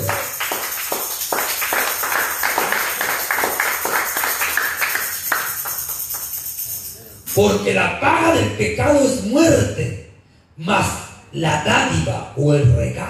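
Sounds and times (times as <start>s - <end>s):
crowd clapping hands in a steady rhythm: 0.0s - 6.7s
speech: 7.4s - 10.0s, 10.6s - 13.0s.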